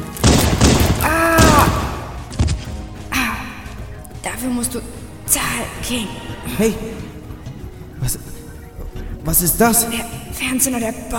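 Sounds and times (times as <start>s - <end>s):
gunshots in a German radio drama: 0.0s - 2.7s
speech: 4.4s - 7.2s, 8.0s - 8.4s, 9.2s - 11.1s.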